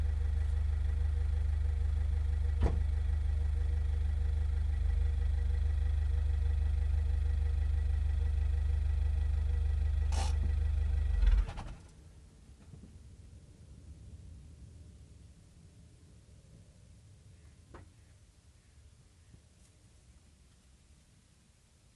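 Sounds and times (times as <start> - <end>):
car driving and stopping: 0.0 - 12.1.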